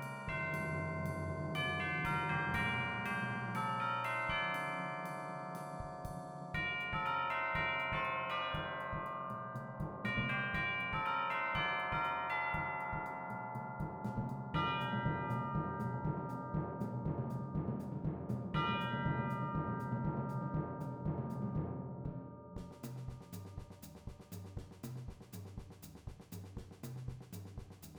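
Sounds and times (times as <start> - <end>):
drum set in a percussion ensemble: 0.0 - 4.2, 7.8 - 11.1, 11.9 - 21.7, 22.6 - 27.9
chimes in a percussion ensemble: 0.0 - 21.7.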